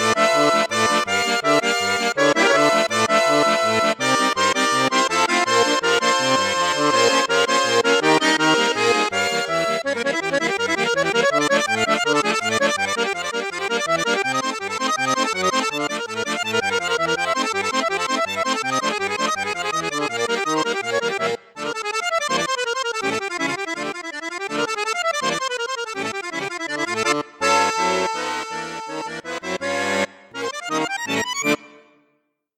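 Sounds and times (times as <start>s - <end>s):
Cavagnolo orchestra accordion on bassoon and flute registers: 0.0s - 32.5s.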